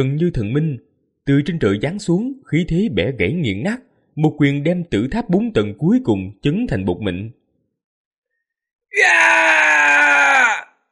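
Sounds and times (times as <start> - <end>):
speech: 0.0 - 7.4, 8.9 - 9.7
man screaming in pain: 8.9 - 10.8.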